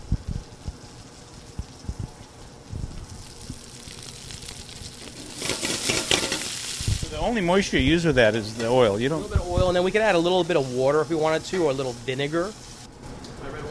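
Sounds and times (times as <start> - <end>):
garlic and Brussels sprout leaves sizzling in a hot pan: 0.0 - 13.6
dull knocks of stirring: 5.1 - 6.5
speech: 7.2 - 12.7.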